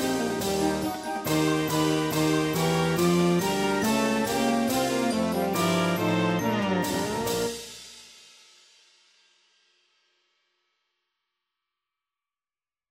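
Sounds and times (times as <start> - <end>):
marching band playing a fight song: 0.0 - 7.6.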